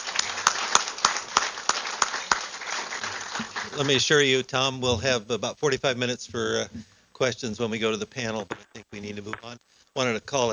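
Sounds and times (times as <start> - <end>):
audience applause: 0.0 - 4.3
speech: 3.4 - 10.5.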